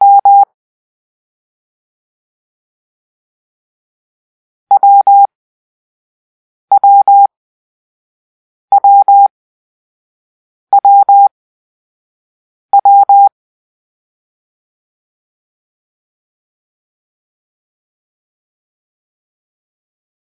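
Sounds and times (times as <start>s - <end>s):
morse code for the letter W: 0.0s - 0.4s, 4.7s - 5.3s, 6.7s - 7.3s, 8.7s - 9.3s, 10.7s - 11.3s, 12.8s - 13.3s.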